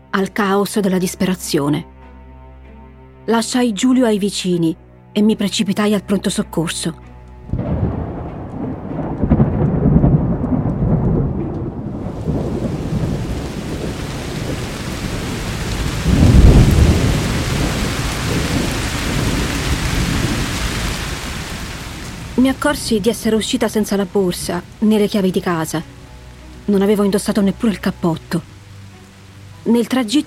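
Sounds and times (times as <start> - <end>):
speech: 0.2 - 1.9, 3.2 - 7.6, 22.5 - 26.0, 26.7 - 28.5, 29.6 - 30.2
thunder: 7.5 - 22.4
heavy pouring rain: 7.5 - 30.2.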